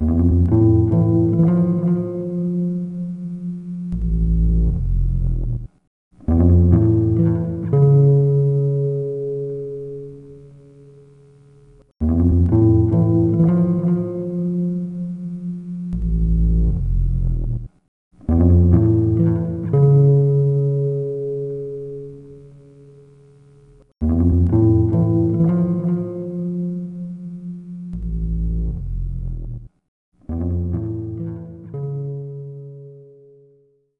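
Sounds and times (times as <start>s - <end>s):
bass: 0.0s - 10.4s, 11.6s - 21.3s, 23.1s - 33.1s.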